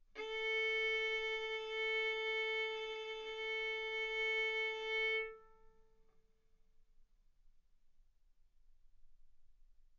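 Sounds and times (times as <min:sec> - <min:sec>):
violin arco on A string: 0:00.2 - 0:05.8.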